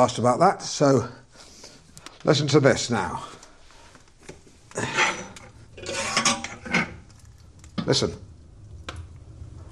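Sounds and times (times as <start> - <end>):
speech: 0.0 - 1.2, 2.2 - 3.4, 4.8 - 5.0, 7.9 - 8.3
metallic clanks and rattles lighting a fire in a wood-burning stove: 4.8 - 7.2.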